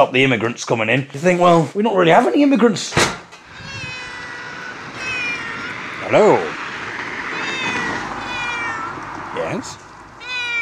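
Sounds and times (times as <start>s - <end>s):
speech: 0.0s - 3.2s, 6.1s - 6.5s, 9.5s - 9.8s
cat meowing: 3.4s - 6.6s, 7.2s - 9.5s, 10.2s - 10.6s.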